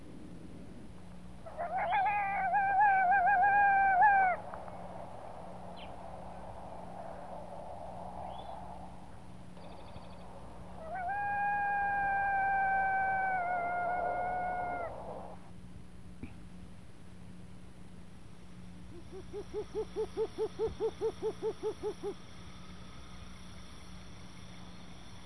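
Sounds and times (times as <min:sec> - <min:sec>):
Long-eared Owl in summer: 0:01.4 - 0:04.4, 0:10.8 - 0:15.4, 0:19.0 - 0:22.2.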